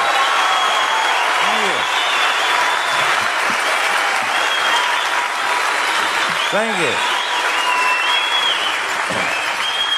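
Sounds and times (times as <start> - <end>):
audience applause: 0.0 - 9.9
speech: 6.5 - 7.1.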